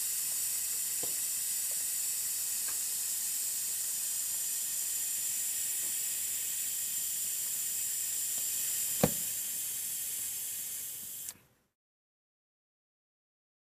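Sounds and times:
tire deflating: 0:00.0 - 0:11.4.

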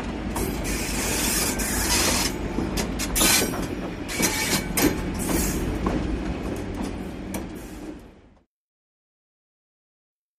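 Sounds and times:
diesel train wheels clanking: 0:00.0 - 0:08.2.

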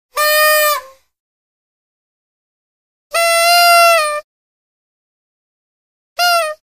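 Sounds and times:
raspy party favor horns: 0:00.2 - 0:00.9, 0:03.2 - 0:04.2, 0:06.2 - 0:06.6.

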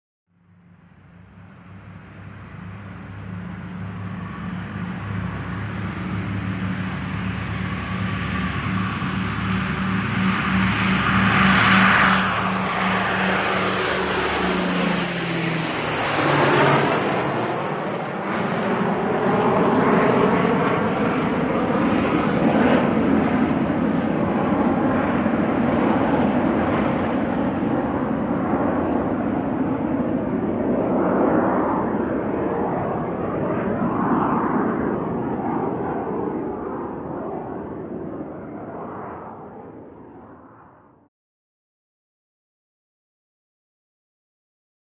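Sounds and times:
propeller airplane passing by: 0:00.4 - 0:41.1.

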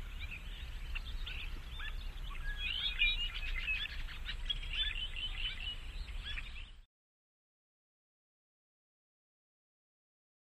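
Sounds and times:
forest birds: 0:00.0 - 0:06.9.

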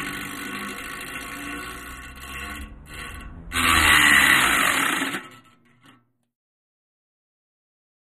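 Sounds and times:
small fan blade running at variable speed: 0:00.0 - 0:05.5.

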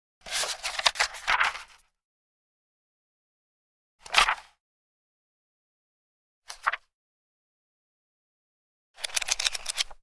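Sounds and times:
page turning: 0:00.2 - 0:01.9, 0:04.1 - 0:04.5, 0:06.5 - 0:06.9, 0:09.0 - 0:10.0.

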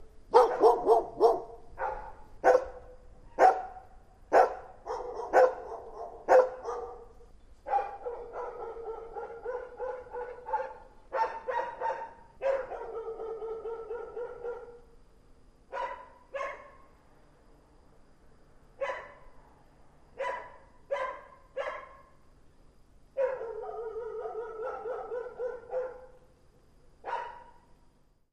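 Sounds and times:
dog barking: 0:00.3 - 0:14.9, 0:15.7 - 0:16.9, 0:18.8 - 0:19.3, 0:20.2 - 0:22.2, 0:23.2 - 0:26.3, 0:27.0 - 0:27.7.

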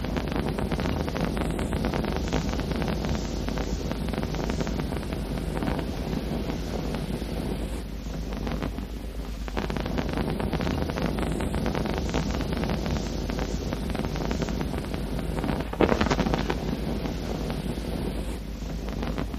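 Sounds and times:
hand held torch fire burning: 0:00.0 - 0:19.3.

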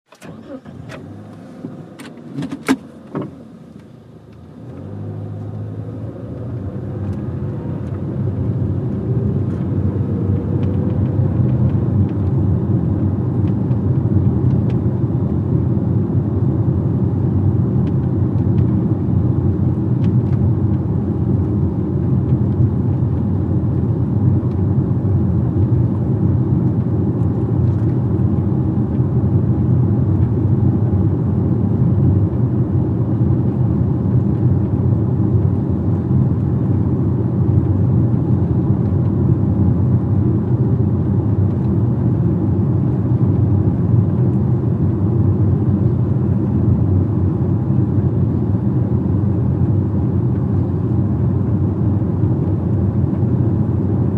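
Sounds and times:
sedan engine accelerating and stopping: 0:00.1 - 0:54.1.

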